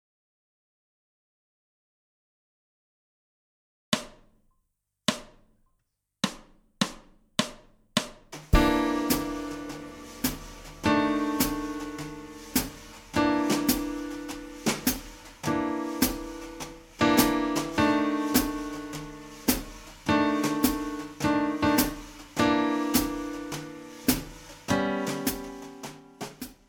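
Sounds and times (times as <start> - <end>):
blues music in all keys: 8.5 - 26.6.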